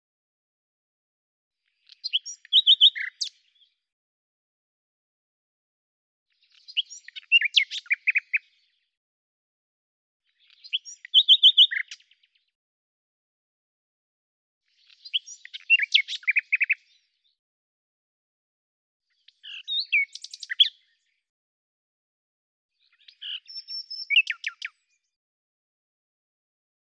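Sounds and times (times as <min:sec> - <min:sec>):
common nightingale singing: 0:01.8 - 0:03.7, 0:06.4 - 0:08.6, 0:10.3 - 0:12.4, 0:14.7 - 0:17.0, 0:19.2 - 0:21.0, 0:22.8 - 0:25.0.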